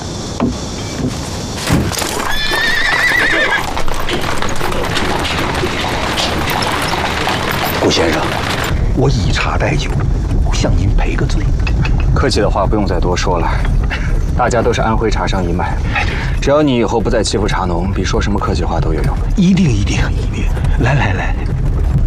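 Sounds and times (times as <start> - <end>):
clip-clopping hooves of a hired horse-drawn carriage: 0.4 - 22.0
horse whinnying: 2.0 - 5.2
people talking: 4.7 - 22.0.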